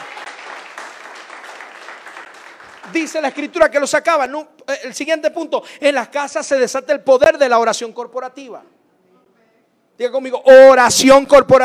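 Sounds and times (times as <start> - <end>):
audience applauding: 0.0 - 3.6
speech: 2.9 - 8.8, 10.0 - 11.6.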